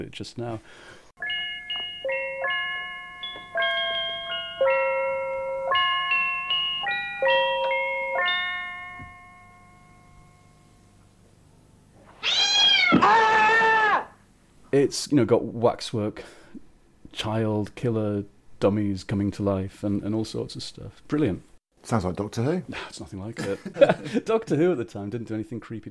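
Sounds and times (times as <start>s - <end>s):
speech: 0.0s - 1.0s, 14.8s - 16.4s, 17.2s - 25.8s
bright chiming tones: 1.2s - 11.0s
cat yowling as it drops: 12.1s - 14.2s
laughter: 23.4s - 24.3s.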